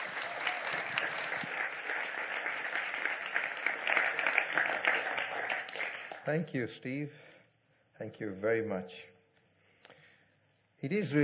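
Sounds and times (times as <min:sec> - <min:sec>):
church congregation applauding to welcome a guest speaker: 0:00.0 - 0:06.5
speech: 0:06.3 - 0:07.3, 0:08.0 - 0:09.1, 0:10.8 - 0:11.2.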